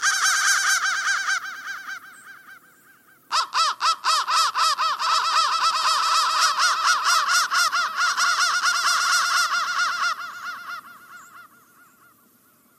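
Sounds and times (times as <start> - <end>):
crow calls: 0.0 - 12.7.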